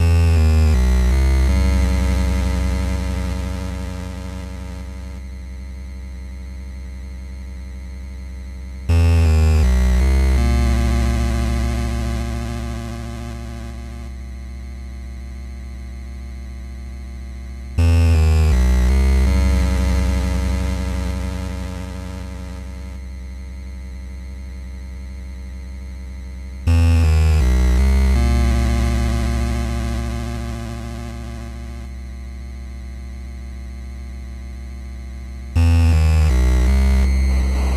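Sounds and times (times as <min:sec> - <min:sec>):
8-bit root tone: 0:00.0 - 0:05.2, 0:08.9 - 0:14.2, 0:17.8 - 0:23.0, 0:26.7 - 0:31.9, 0:35.6 - 0:37.7.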